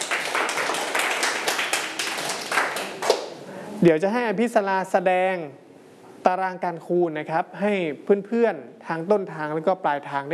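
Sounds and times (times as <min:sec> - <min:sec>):
students clapping: 0:00.0 - 0:03.4
speech: 0:03.8 - 0:05.6, 0:06.2 - 0:10.3.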